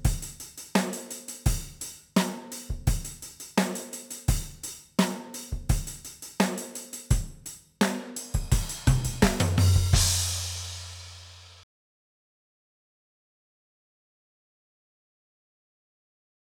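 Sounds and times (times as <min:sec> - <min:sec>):
drums: 0:00.0 - 0:11.6.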